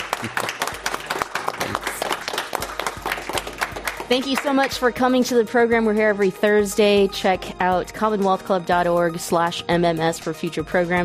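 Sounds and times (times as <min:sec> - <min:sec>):
audience applause: 0:00.0 - 0:04.4
speech: 0:00.2 - 0:00.5, 0:04.1 - 0:11.0.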